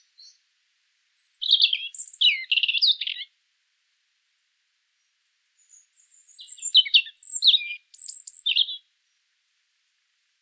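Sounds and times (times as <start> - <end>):
European robin Erithacus rubecula singing tinkling warbled notes and trills: 0.0 - 0.4, 1.2 - 3.3, 5.6 - 8.9.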